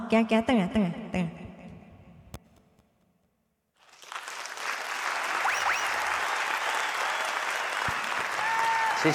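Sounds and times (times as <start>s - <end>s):
speech: 0.1s - 1.1s
audience applause: 3.8s - 9.1s
faint whistles: 5.4s - 8.2s.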